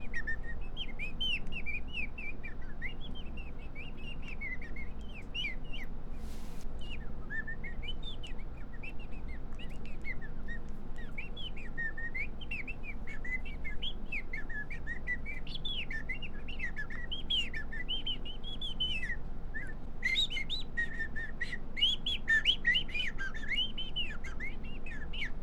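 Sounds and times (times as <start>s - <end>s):
birds chirping and whistling: 0.0s - 25.4s
low steady background hum: 0.0s - 25.4s.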